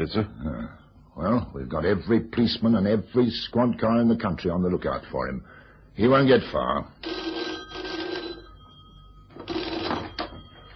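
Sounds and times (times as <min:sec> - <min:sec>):
speech: 0:00.0 - 0:07.3
old-fashioned telephone bell ringing: 0:07.0 - 0:10.7.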